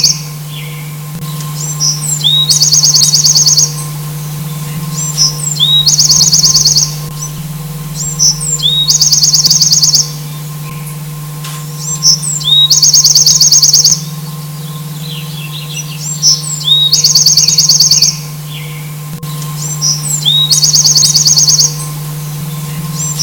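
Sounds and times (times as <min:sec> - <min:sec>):
Bewick's wren song with slurred notes and rapid high trill: 0:00.0 - 0:23.2.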